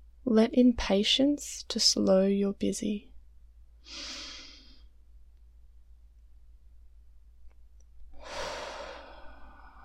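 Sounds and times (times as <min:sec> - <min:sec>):
faint low hum: 0:00.0 - 0:09.8
speech: 0:00.3 - 0:03.1, 0:03.9 - 0:04.2
slow breaths during a guided meditation: 0:03.8 - 0:04.9, 0:08.1 - 0:09.8.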